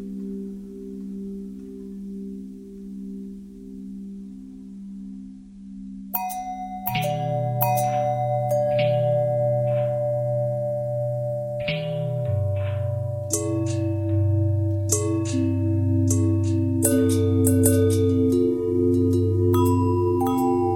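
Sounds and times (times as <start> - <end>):
long bell thread: 6.2 - 20.7.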